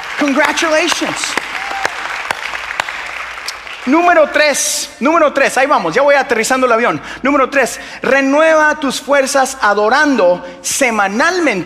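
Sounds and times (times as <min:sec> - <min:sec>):
audience applause: 0:00.0 - 0:04.2
speech: 0:00.2 - 0:01.4, 0:03.8 - 0:11.6.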